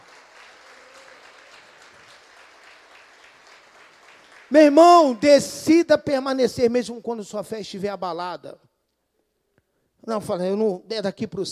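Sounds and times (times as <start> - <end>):
audience applause: 0.0 - 4.8
speech: 4.5 - 8.7, 10.0 - 11.5.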